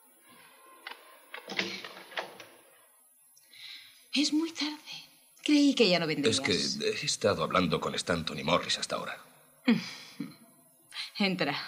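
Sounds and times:
quiet steady hiss: 0.0s - 11.6s
door being unlocked and opened: 0.8s - 2.6s
speech: 4.2s - 10.3s, 11.2s - 11.6s.

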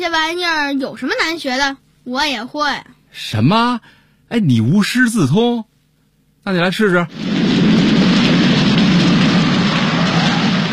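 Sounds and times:
speech: 0.0s - 5.7s, 6.4s - 7.4s
rain falling: 7.1s - 10.7s.

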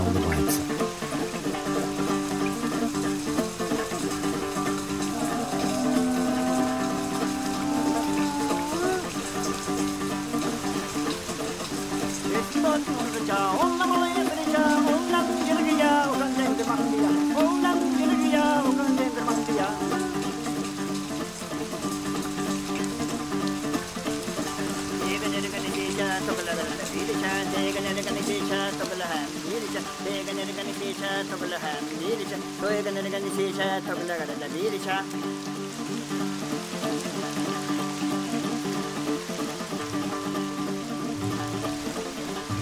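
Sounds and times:
man singing melodically: 0.0s - 0.9s, 4.5s - 10.0s, 12.2s - 20.7s, 24.9s - 35.2s
plucked dombra: 0.0s - 21.1s
rain falling outside a yurt's window: 0.0s - 42.6s.

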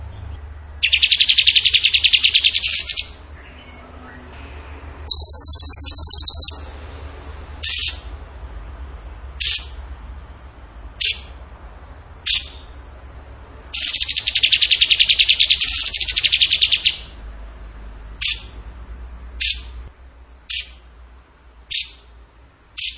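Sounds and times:
bird song with trills and chirps: 0.8s - 6.8s, 7.6s - 8.2s, 9.4s - 9.9s, 11.0s - 11.4s, 12.2s - 12.8s, 13.7s - 17.2s, 18.2s - 18.6s, 19.4s - 19.8s, 20.4s - 20.9s, 21.7s - 22.1s, 22.8s - 22.9s.

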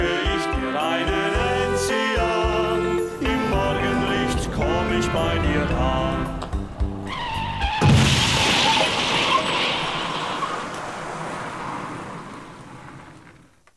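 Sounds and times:
engine or horn tone: 0.3s - 7.6s
car crash smash with scattering debris: 2.9s - 13.6s.

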